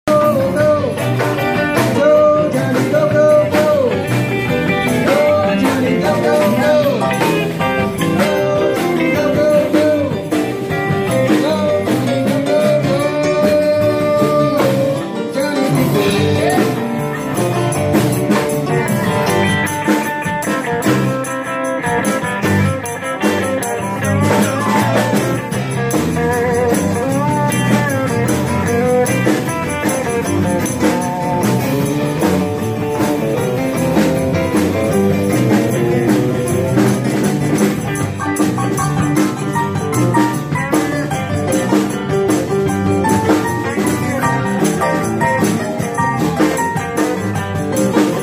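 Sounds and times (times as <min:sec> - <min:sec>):
cover band playing: 0:00.0 - 0:48.2.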